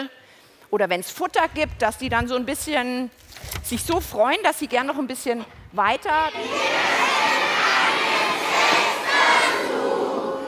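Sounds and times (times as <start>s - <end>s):
speech: 0.0s - 6.7s
crowd of 500 people shouting together: 6.3s - 10.4s.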